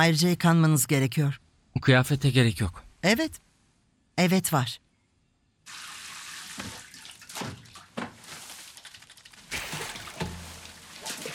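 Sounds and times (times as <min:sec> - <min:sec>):
speech: 0:00.0 - 0:03.5, 0:04.2 - 0:04.8, 0:07.4 - 0:07.6
bathwater gushing from a tap into a tub: 0:05.7 - 0:11.3.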